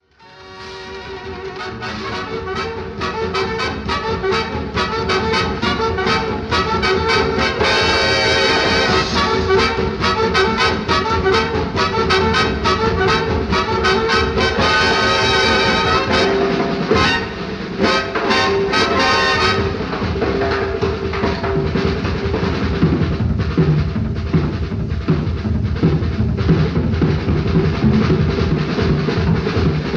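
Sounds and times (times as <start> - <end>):
drum solo: 0.8 - 29.9.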